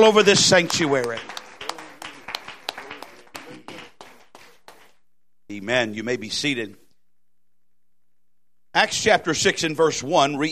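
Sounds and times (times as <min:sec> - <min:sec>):
speech: 0:00.0 - 0:01.4, 0:05.5 - 0:06.8, 0:08.8 - 0:10.5
audience clapping hands: 0:00.0 - 0:05.1.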